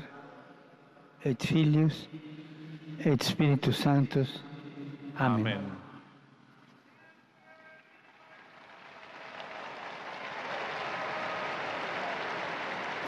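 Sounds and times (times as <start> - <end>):
speech: 1.2 - 2.4, 3.0 - 4.5, 5.2 - 5.8
crowd applause and cheering: 8.0 - 13.0.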